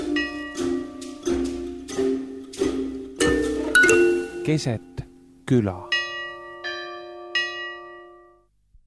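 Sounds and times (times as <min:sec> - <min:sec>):
bells ringing in programme signature tune: 0:00.1 - 0:01.5, 0:03.2 - 0:04.8, 0:05.8 - 0:08.4
speech: 0:04.5 - 0:05.9.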